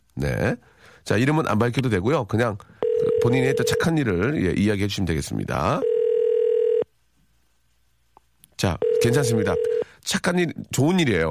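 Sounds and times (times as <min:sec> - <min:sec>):
speech: 0:00.2 - 0:05.9, 0:08.6 - 0:11.2
telephone dialing and ringing tone: 0:02.8 - 0:03.9, 0:05.8 - 0:06.8, 0:08.8 - 0:09.8.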